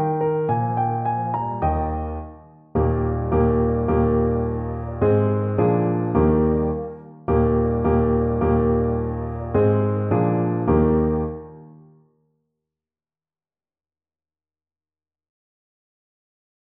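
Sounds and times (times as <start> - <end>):
ecossaise at medium tempo 106: 0.0 - 11.6.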